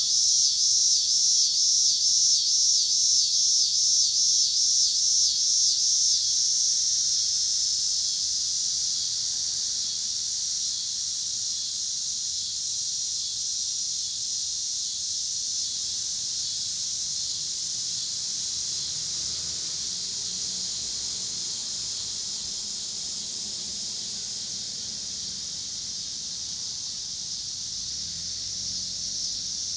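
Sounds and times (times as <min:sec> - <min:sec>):
cicadas in Pittsburgh PA: 0:00.0 - 0:29.7
cars in Pittsburgh PA: 0:15.8 - 0:29.7.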